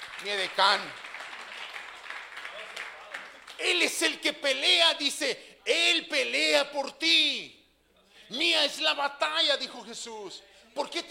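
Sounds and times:
audience applause: 0:00.0 - 0:03.6
speech: 0:00.2 - 0:01.0, 0:03.6 - 0:07.6, 0:08.3 - 0:11.0.

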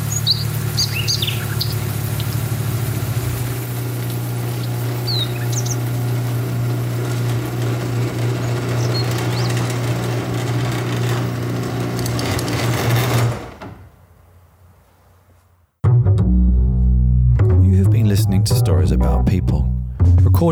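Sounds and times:
birds chirping: 0:00.0 - 0:07.2, 0:08.1 - 0:10.2
loud steady low rumble like an idling engine: 0:00.0 - 0:13.0, 0:16.2 - 0:20.4.

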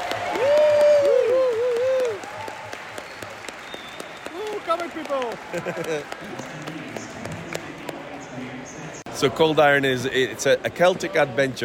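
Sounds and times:
audience applause: 0:00.0 - 0:07.8
speech: 0:05.2 - 0:06.8, 0:09.2 - 0:11.6
laughter: 0:05.3 - 0:06.6.

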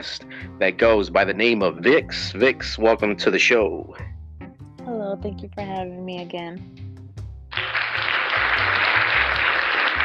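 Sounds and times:
speech: 0:00.0 - 0:04.1, 0:05.1 - 0:06.8
crowd applause: 0:07.5 - 0:10.0.

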